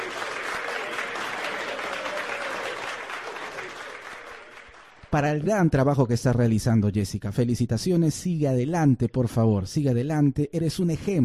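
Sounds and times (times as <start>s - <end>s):
applause: 0.0s - 5.4s
speech: 5.1s - 11.2s.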